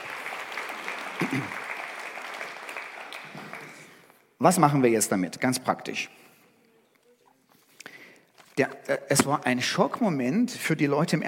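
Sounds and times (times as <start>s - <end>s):
audience clapping: 0.0s - 4.2s
speech: 4.4s - 6.3s, 8.6s - 11.2s.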